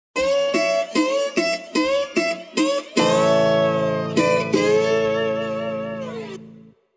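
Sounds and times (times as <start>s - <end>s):
long dobro guitar: 0.2s - 6.8s.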